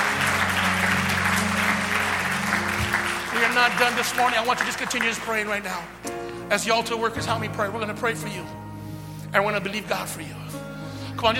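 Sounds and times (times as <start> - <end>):
audience clapping: 0.0 - 6.2
speech: 3.5 - 8.6, 9.3 - 10.6, 11.2 - 11.3.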